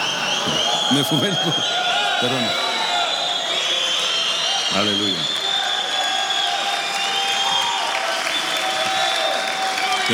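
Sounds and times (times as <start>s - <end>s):
audience applause: 0.0s - 10.1s
speech: 0.4s - 2.7s, 4.7s - 5.4s.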